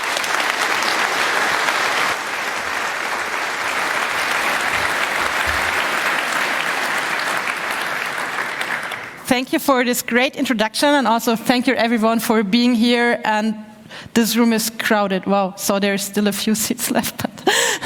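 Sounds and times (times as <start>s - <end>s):
audience applause: 0.0s - 9.3s
speech: 9.3s - 17.3s.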